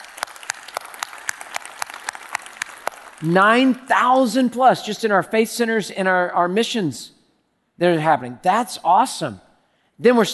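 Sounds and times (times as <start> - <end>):
audience applauding: 0.0 - 3.3
speech: 3.2 - 7.2, 7.8 - 9.4, 10.0 - 10.3.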